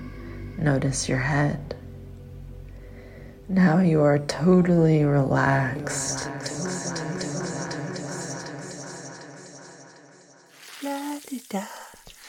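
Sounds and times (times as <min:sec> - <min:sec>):
speech: 0:00.6 - 0:01.8, 0:03.5 - 0:07.0, 0:11.3 - 0:11.8
person singing: 0:05.4 - 0:09.6
breakfast frying in a pan in a radio drama: 0:10.5 - 0:12.2.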